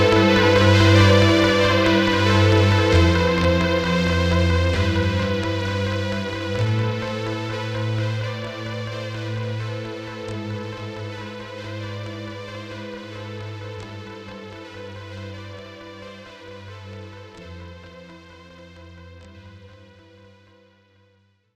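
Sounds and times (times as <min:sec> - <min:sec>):
dramatic music ending: 0:00.0 - 0:15.5.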